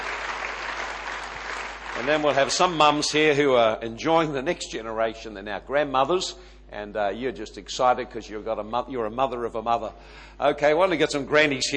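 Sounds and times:
audience clapping: 0:00.0 - 0:03.1
speech: 0:02.0 - 0:11.7.

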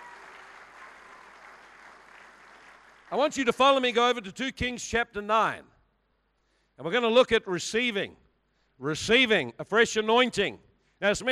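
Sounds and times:
audience clapping: 0:00.0 - 0:03.8
speech: 0:03.1 - 0:05.7, 0:06.8 - 0:08.2, 0:08.8 - 0:11.3.

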